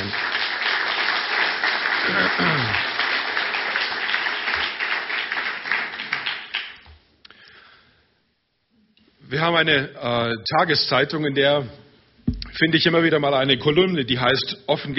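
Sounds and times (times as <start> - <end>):
audience applause: 0.0 - 6.8
speech: 9.4 - 11.8, 12.6 - 14.9.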